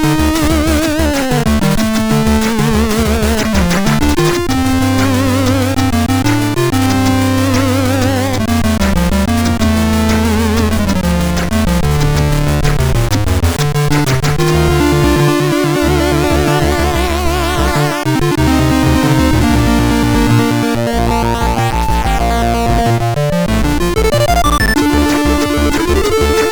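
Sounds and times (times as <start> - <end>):
chiptune music from a MOS6581R4 sound chip: 0.0 - 26.5.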